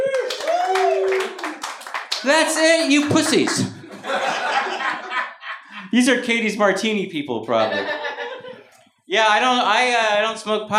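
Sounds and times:
person whooping: 0:00.0 - 0:01.7
audience applause: 0:00.0 - 0:03.8
speech: 0:02.2 - 0:04.3, 0:05.9 - 0:08.0, 0:09.1 - 0:10.7
laughter: 0:02.4 - 0:05.9, 0:07.5 - 0:08.8.

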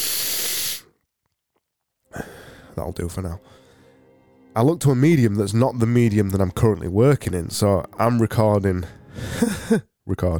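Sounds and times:
person blowing nose: 0:00.0 - 0:00.9
speech: 0:02.8 - 0:03.6, 0:04.6 - 0:10.3.

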